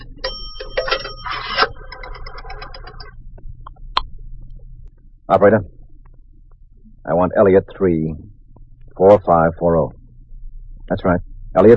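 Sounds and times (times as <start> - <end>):
coins dropping into a coin pay phone: 0.1 - 3.1
speech: 5.3 - 5.8, 7.2 - 8.4, 9.0 - 10.0, 10.9 - 11.7.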